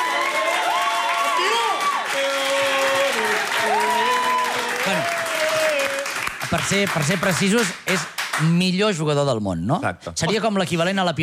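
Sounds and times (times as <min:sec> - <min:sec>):
audience applause: 0:00.0 - 0:08.6
speech: 0:06.5 - 0:11.2.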